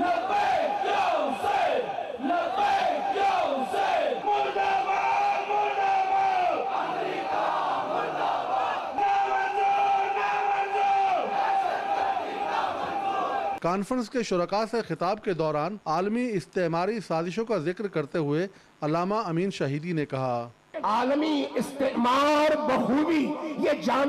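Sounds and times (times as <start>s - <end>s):
large conference crowd chanting slogans in unison: 0.0s - 13.6s
speech: 13.6s - 24.0s.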